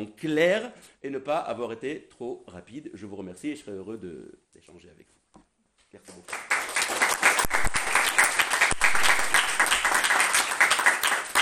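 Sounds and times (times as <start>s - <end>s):
speech: 0.0s - 5.1s
audience applause after lecture: 6.3s - 11.4s.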